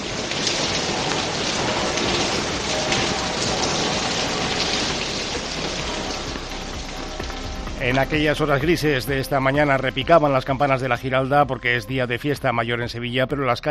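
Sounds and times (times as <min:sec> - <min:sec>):
heavy rain pouring down in Sevilla: 0:00.0 - 0:12.4
speech: 0:07.9 - 0:13.6.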